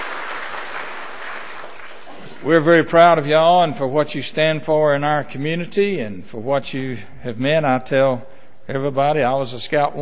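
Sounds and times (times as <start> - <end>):
audience applauding scouts at a morning gathering: 0.0 - 2.5
speech: 2.4 - 10.0.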